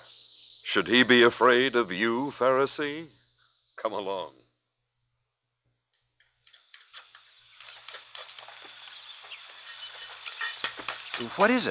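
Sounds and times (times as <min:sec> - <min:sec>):
speech: 0:00.7 - 0:03.2, 0:03.8 - 0:04.4, 0:11.2 - 0:11.6
stonecutter working stone with hand tools: 0:05.9 - 0:11.6.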